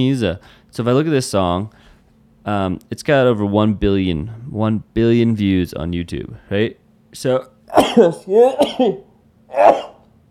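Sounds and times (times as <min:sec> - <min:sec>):
speech: 0:00.0 - 0:09.9
person sneezing: 0:07.7 - 0:10.1
strained voiced sounds: 0:07.7 - 0:10.1.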